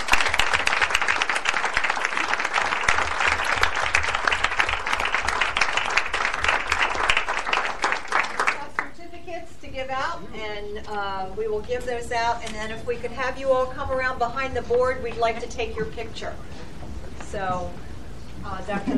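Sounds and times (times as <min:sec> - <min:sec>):
audience clapping: 0:00.0 - 0:08.9
speech: 0:10.8 - 0:16.6, 0:17.3 - 0:17.8, 0:18.5 - 0:18.9.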